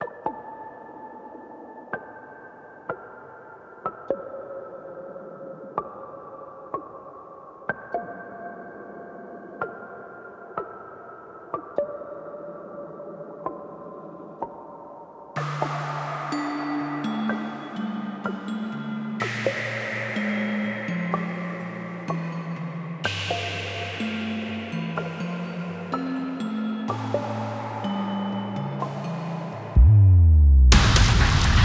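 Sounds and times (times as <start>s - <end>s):
Midwest music loop: 15.4s - 31.6s.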